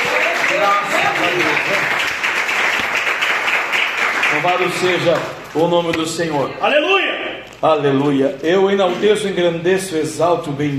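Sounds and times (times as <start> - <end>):
audience applauding: 0.0 - 5.3
speech: 4.4 - 10.7.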